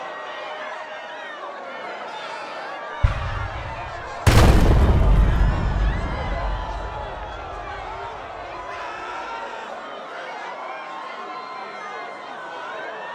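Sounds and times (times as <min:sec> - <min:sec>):
siege ambience: 0:03.0 - 0:08.6.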